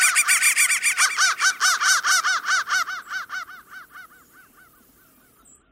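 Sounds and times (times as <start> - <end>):
crows cawing in a dense chorus: 0.0 - 5.4.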